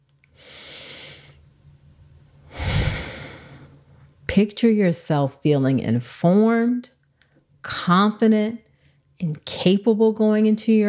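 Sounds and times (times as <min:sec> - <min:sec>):
deep breath: 0:00.4 - 0:01.4, 0:02.4 - 0:03.8
speech: 0:04.4 - 0:07.0, 0:07.6 - 0:10.8.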